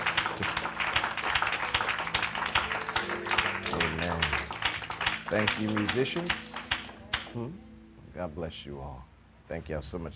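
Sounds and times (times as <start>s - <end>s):
audience clapping hands: 0.0s - 7.3s
speech: 5.3s - 6.5s, 7.3s - 10.1s.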